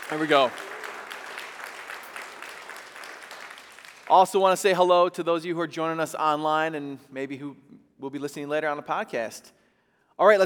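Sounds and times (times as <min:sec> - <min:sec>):
audience applause: 0:00.0 - 0:04.3
speech: 0:00.1 - 0:00.7, 0:04.1 - 0:09.6, 0:10.2 - 0:10.4.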